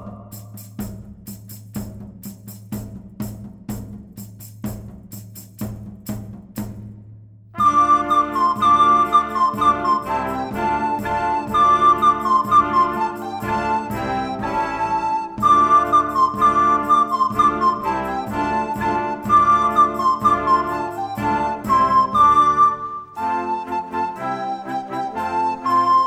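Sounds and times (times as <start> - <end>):
recorder playing: 7.6 - 26.0.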